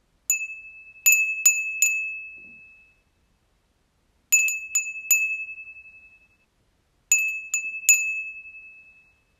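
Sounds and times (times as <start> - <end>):
wind chime: 0.3 - 3.1, 4.4 - 6.4, 7.1 - 9.3.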